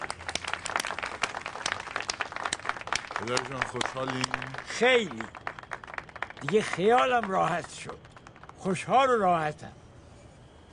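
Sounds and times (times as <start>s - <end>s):
wedding guests clapping in applause: 0.0s - 9.2s
speech: 3.2s - 5.4s, 6.4s - 9.8s.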